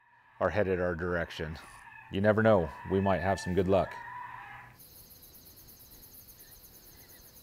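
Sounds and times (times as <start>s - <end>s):
recorded rabbit distress call: 1.4s - 4.8s.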